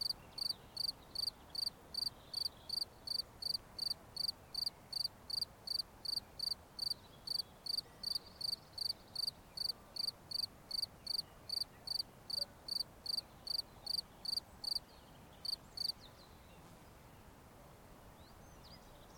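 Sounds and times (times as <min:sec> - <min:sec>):
cricket chirping: 0:00.0 - 0:14.8, 0:15.4 - 0:15.9
soft background hiss: 0:00.0 - 0:19.1.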